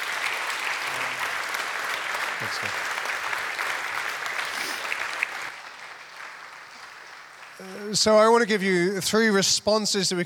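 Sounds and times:
audience applause: 0:00.0 - 0:08.2
speech: 0:02.4 - 0:03.1, 0:07.8 - 0:10.2.

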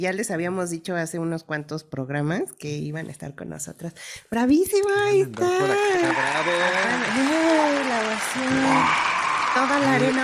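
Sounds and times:
speech: 0:00.0 - 0:10.2
excited person shouting and cheering: 0:05.4 - 0:07.8, 0:08.4 - 0:10.2
recorded crowd applause sound effect: 0:05.4 - 0:10.2.

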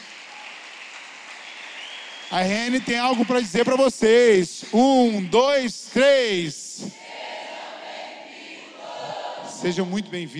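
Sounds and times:
audience applause: 0:00.0 - 0:05.7
speech: 0:02.3 - 0:07.2, 0:09.6 - 0:10.3.

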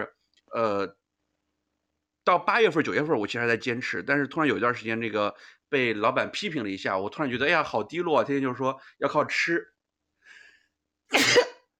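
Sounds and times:
speech: 0:00.0 - 0:01.0, 0:02.3 - 0:09.7
sneeze: 0:11.1 - 0:11.6.

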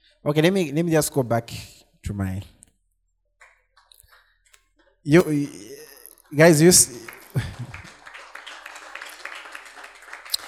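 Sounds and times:
speech: 0:00.2 - 0:02.6, 0:05.0 - 0:07.8
laughter: 0:05.2 - 0:10.4
audience clapping: 0:06.4 - 0:10.4.

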